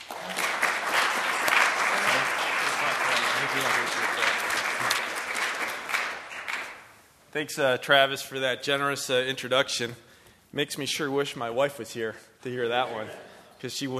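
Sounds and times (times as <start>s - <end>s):
lecture audience clapping to welcome the speaker: 0.0s - 7.1s
speech: 7.4s - 13.9s.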